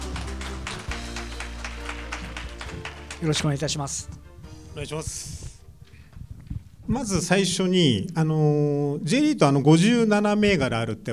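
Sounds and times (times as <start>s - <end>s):
audience applause welcoming speakers: 0.0s - 4.0s
speech: 3.2s - 4.2s, 4.8s - 5.4s, 6.9s - 11.1s.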